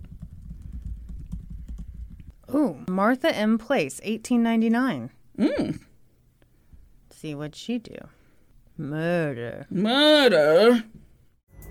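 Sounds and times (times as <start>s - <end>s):
typing on a computer keyboard: 0.0s - 2.3s
speech: 2.5s - 5.9s, 7.2s - 8.2s, 8.8s - 11.0s.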